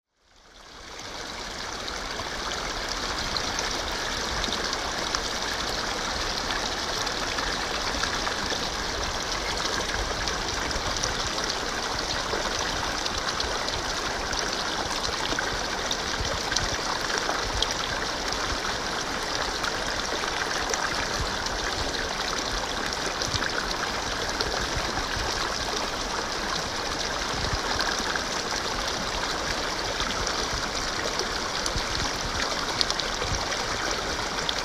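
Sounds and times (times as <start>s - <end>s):
Gave de Pau river at Gavarnie: 0.2s - 34.6s.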